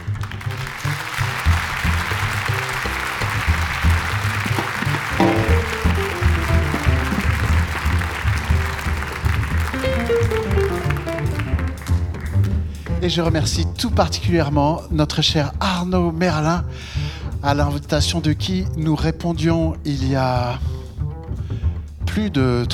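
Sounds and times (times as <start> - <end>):
audience applauding: 0.0 - 13.0
speech: 13.1 - 20.8, 22.2 - 22.7.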